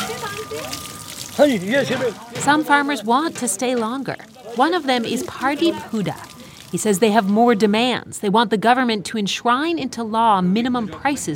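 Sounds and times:
water sloshing as clothes are washed: 0.0 - 8.0
speech: 0.5 - 11.3.

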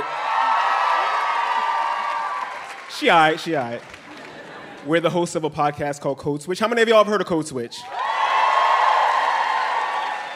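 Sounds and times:
crowd clapping and cheering: 0.0 - 5.2, 7.8 - 10.3
speech: 3.0 - 4.0, 4.8 - 8.0.

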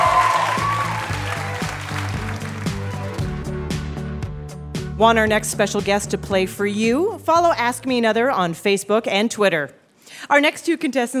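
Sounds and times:
live quiz show audience applause for Melissa Joan Hart: 0.0 - 3.2
speech: 5.0 - 11.1.

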